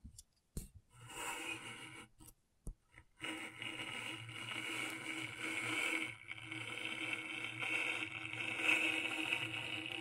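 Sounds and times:
scratching on a scratchboard: 0:03.2 - 0:10.0.

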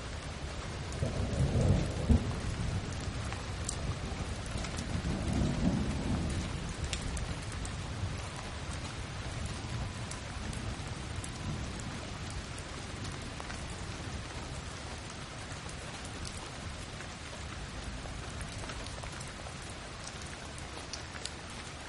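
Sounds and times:
steady rain: 0:00.0 - 0:21.8
deep low thunder rumbling: 0:00.9 - 0:13.4.

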